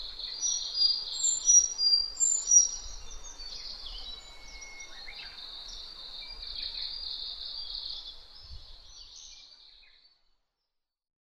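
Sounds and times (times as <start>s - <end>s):
Sakhalin leaf warbler song: 0.0s - 10.8s.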